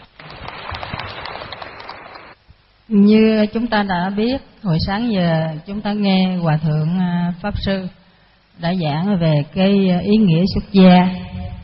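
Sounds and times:
audience applause: 0.0 - 2.4
speech: 2.9 - 8.0, 8.6 - 11.3.

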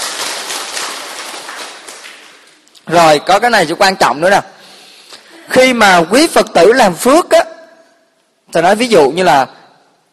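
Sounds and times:
audience applause: 0.0 - 2.6
speech: 2.9 - 4.5, 5.5 - 7.4, 8.5 - 9.6.

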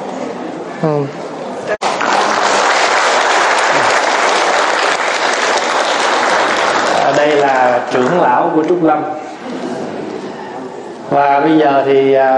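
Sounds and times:
speech: 0.8 - 1.2, 7.9 - 9.6, 11.1 - 12.3
audience applause at a Buddhist temple gathering: 1.8 - 8.8.

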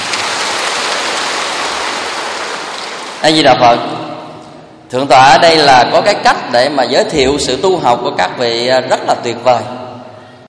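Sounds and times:
audience applause: 0.0 - 3.2
speech: 3.2 - 4.1, 4.9 - 9.8.

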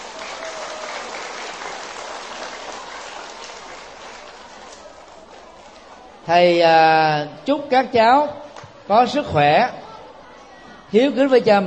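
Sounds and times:
audience applause: 0.0 - 5.8
speech: 6.3 - 9.8, 10.9 - 11.6.

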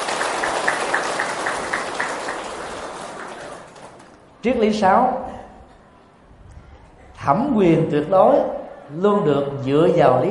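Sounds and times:
audience applause: 0.0 - 4.2
speech: 4.4 - 5.3, 7.2 - 10.3.

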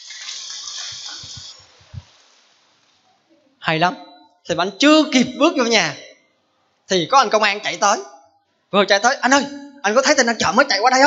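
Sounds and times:
applause: 0.0 - 1.6
speech: 3.6 - 6.0, 6.9 - 8.1, 8.7 - 11.0.

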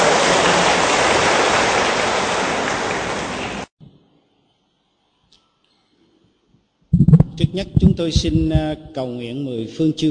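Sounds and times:
hall audience applause: 0.0 - 3.7
speech: 7.5 - 10.0.

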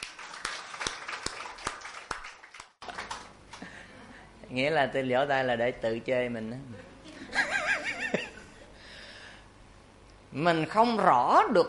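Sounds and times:
audience applause: 0.0 - 3.4
speech: 4.5 - 6.9, 10.4 - 11.6
laughter: 7.1 - 8.7.

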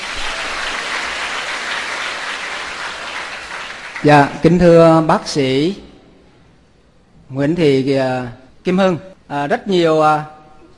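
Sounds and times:
audience applause: 0.0 - 4.4
speech: 4.0 - 5.9, 7.3 - 10.4.

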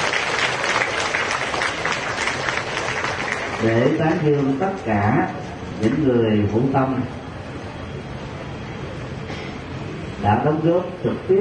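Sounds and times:
applause from Buddhist followers in the Giác Ngộ temple courtyard: 0.0 - 4.6
speech: 3.6 - 7.2, 10.2 - 11.3.

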